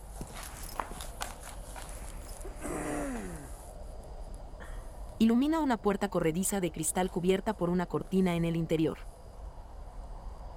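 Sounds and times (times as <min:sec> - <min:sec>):
footsteps walking away: 0:00.0 - 0:02.5
low hum: 0:00.0 - 0:10.5
brief breathy falling vocal sigh: 0:02.5 - 0:03.6
speech: 0:05.2 - 0:09.1.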